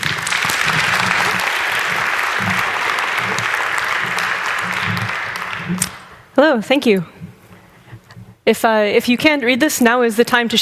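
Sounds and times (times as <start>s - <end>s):
audience applause: 0.0s - 6.2s
speech: 6.4s - 7.2s, 8.5s - 10.5s.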